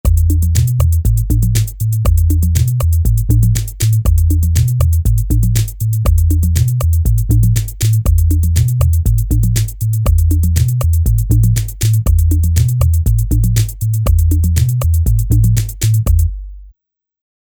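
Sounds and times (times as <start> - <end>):
techno music: 0.1 - 16.3.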